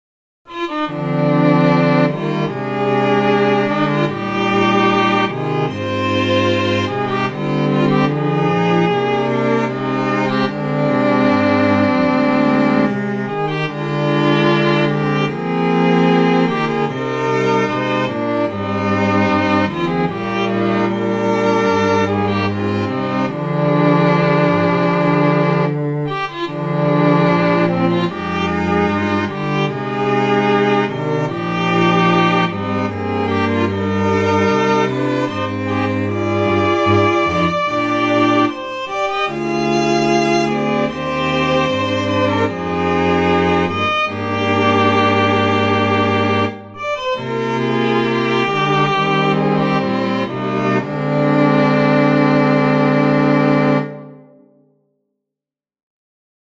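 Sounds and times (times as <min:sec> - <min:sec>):
anthem music: 0:00.6 - 0:54.5.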